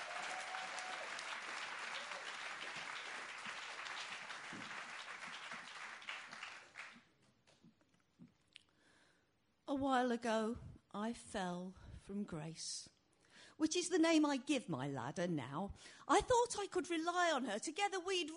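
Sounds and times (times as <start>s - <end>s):
audience applause: 0.0s - 7.0s
speech: 9.8s - 18.3s.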